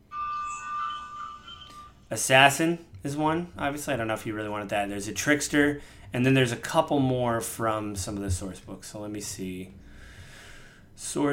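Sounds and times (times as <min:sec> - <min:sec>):
loud electronic alarm blaring: 0:00.0 - 0:02.1
speech: 0:02.1 - 0:09.8, 0:11.0 - 0:11.3.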